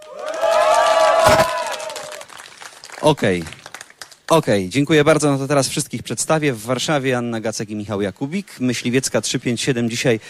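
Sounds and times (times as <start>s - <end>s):
theatre festival audience whooping and shouting at Teatr Zdrojowy: 0.0s - 2.4s
scattered applause: 0.0s - 4.4s
speech: 3.0s - 3.6s, 4.3s - 10.2s.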